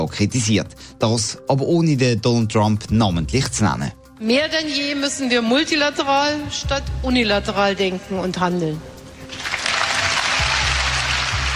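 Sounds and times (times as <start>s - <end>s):
speech: 0.0s - 9.5s
loud applause from a large crowd: 9.3s - 11.5s.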